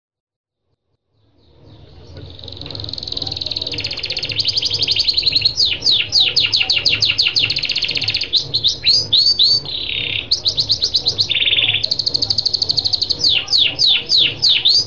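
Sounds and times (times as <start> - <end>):
Lancashire canary chirping and trilling: 0.9 - 14.8.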